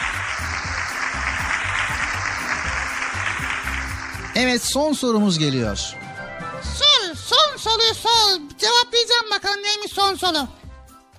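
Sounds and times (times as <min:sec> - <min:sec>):
children applauding: 0:00.0 - 0:05.0
speech: 0:04.4 - 0:06.0, 0:07.6 - 0:10.6.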